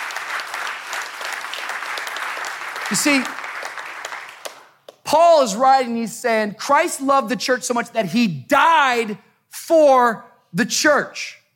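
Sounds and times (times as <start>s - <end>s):
large audience clapping together: 0.0s - 5.2s
speech: 2.9s - 3.4s, 5.1s - 11.4s.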